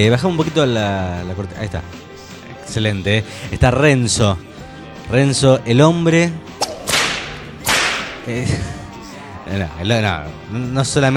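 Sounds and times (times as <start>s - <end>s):
speech: 0.0s - 2.1s, 2.7s - 4.5s, 5.1s - 6.6s, 8.3s - 8.8s, 9.5s - 11.1s
whip cracks: 6.6s - 8.3s.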